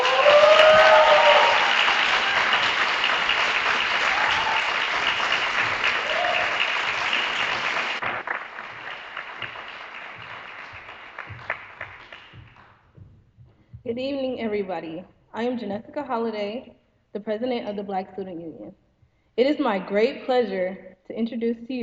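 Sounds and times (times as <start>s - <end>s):
audience clapping at a university event: 0.0s - 12.9s
speech: 14.7s - 18.8s, 19.4s - 21.8s.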